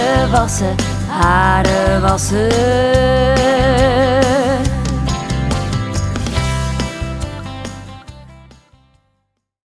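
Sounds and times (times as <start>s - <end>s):
children's song about washing hair: 0.0s - 8.5s.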